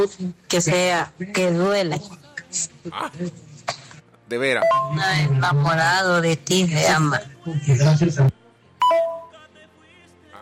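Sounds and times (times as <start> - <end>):
speech: 0.0 - 8.4
telephone ringing with a bright electronic tone: 4.6 - 5.3, 8.8 - 9.4.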